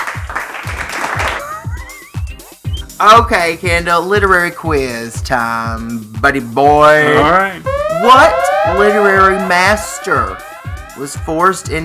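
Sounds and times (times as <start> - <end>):
crowd applause: 0.0 - 1.6
steady thumping beat: 0.0 - 11.8
rising whistly tone: 2.0 - 2.9, 7.6 - 11.8
speech: 3.0 - 11.8.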